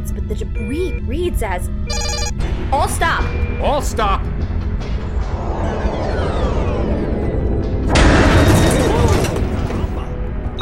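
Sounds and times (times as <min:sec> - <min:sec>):
speech: 0:00.2 - 0:04.9
low rumble of a mine rigged with a proximity trigger: 0:04.3 - 0:09.4
mine explosion against a shielded ship: 0:05.2 - 0:10.0.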